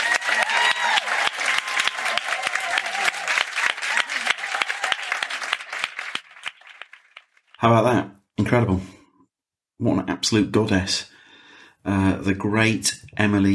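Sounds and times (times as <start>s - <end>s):
audience applause: 0.0s - 7.6s
speech: 7.6s - 9.0s, 9.8s - 11.1s, 11.8s - 13.5s.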